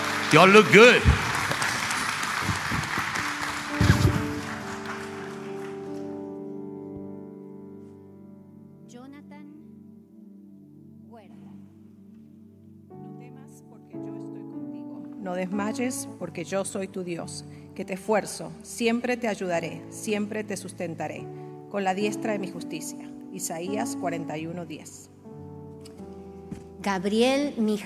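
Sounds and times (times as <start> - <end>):
audience applause: 0.0 - 6.3
speech: 0.3 - 1.2, 15.4 - 25.1, 26.8 - 27.8.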